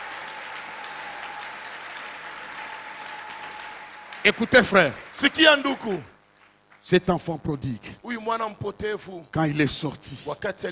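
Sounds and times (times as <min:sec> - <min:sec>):
church congregation cheering in praise: 0:00.0 - 0:06.1
church congregation applauding in praise: 0:00.0 - 0:07.0
speech: 0:04.2 - 0:06.1, 0:06.8 - 0:10.7.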